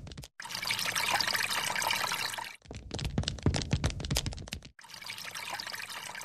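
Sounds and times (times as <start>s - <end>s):
water splashing while washing a face at a bathroom sink: 0.4s - 6.2s.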